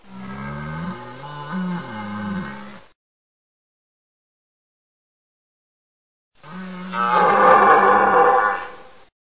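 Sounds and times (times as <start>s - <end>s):
deer calling: 6.9s - 8.9s.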